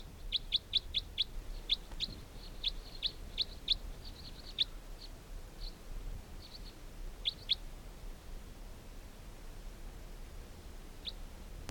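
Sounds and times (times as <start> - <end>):
faint steady hiss: 0.0 - 11.6
netted bird chirps: 0.2 - 5.8.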